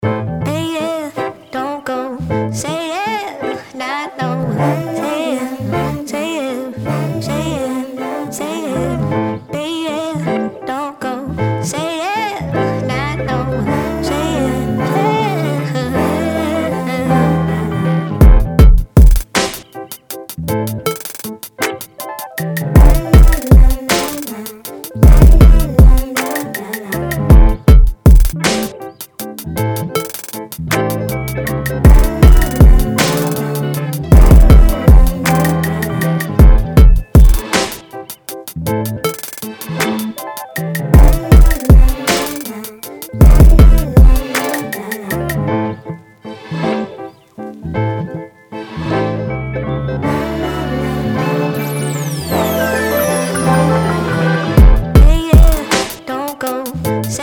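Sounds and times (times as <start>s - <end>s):
instrumental music: 12.5s - 57.2s.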